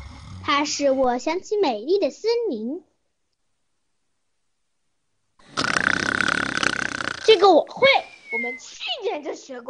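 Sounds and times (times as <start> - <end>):
father snoring: 0.0 - 0.6, 5.4 - 7.5
speech: 0.5 - 2.9, 7.3 - 9.6.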